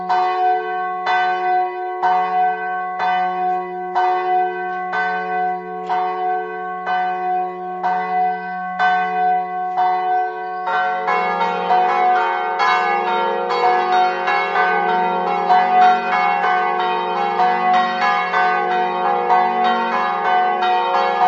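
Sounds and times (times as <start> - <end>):
bells in Savogna: 0.0 - 21.2.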